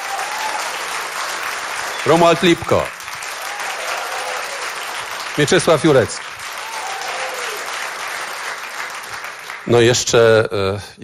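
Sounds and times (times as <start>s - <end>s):
audience applause for a rock band at a Polish radio event: 0.0s - 10.0s
speech: 2.0s - 3.0s, 5.4s - 6.2s, 9.7s - 11.0s.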